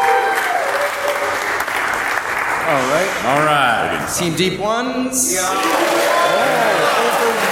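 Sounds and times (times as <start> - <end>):
crowd applauding for a vote: 0.0 - 3.7, 5.5 - 7.5
speech: 2.7 - 7.5.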